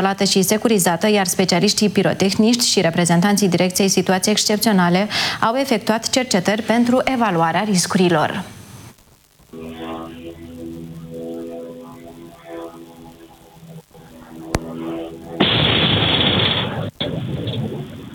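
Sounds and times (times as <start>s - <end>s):
speech: 0.0s - 8.6s
explosion recorded by a surveillance camera: 15.4s - 18.1s.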